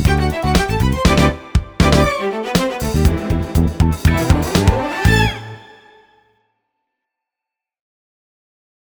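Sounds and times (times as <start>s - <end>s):
disco music: 0.0s - 5.8s.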